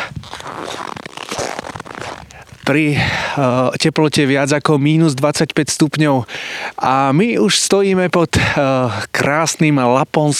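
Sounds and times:
snow creaking underfoot in deep frost: 0.0 - 3.8
speech: 2.7 - 10.3.

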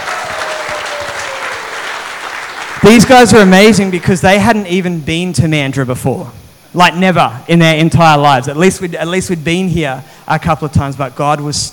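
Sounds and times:
audience applause: 0.0 - 4.1
speech: 2.8 - 11.7.

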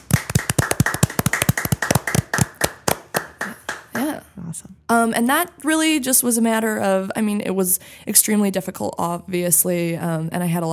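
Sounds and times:
hands clapping into the microphone: 0.0 - 4.1
speech: 4.0 - 10.7.

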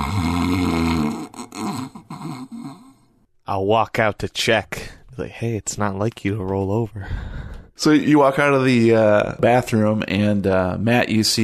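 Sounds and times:
person snoring while asleep: 0.0 - 3.0
speech: 3.5 - 11.4.

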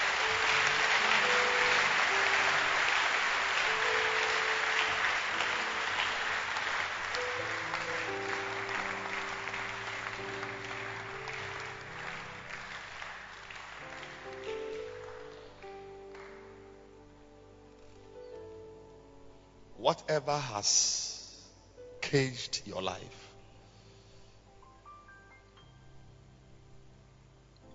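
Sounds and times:
church congregation clapping hands: 0.0 - 16.9
speech: 19.9 - 21.1, 22.1 - 23.2.

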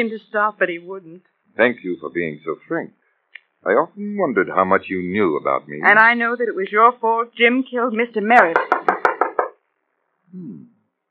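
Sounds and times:
speech: 0.0 - 3.0, 3.6 - 8.9, 10.3 - 10.7
knock on a door: 8.5 - 9.6.

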